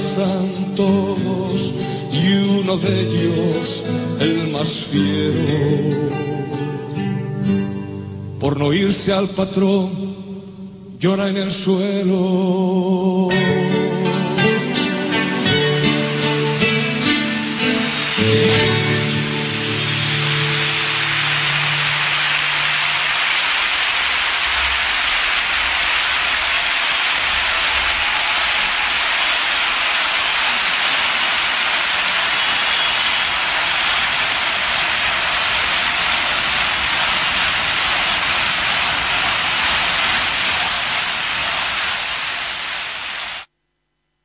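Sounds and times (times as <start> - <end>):
speech: 0.2 - 7.6, 8.4 - 10.1, 11.0 - 13.9
audience applause: 14.8 - 43.5.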